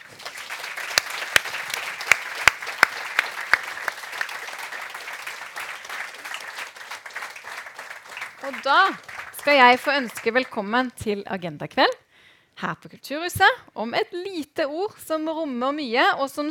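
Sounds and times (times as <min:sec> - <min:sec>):
applause: 0:00.0 - 0:10.8
speech: 0:08.5 - 0:12.0, 0:12.6 - 0:16.4.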